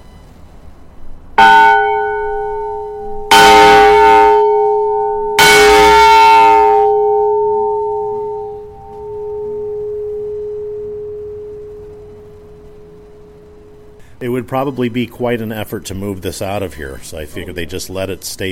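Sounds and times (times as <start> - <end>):
large heavy fire alarm bell chiming: 1.4 - 14.0
speech: 14.4 - 18.5.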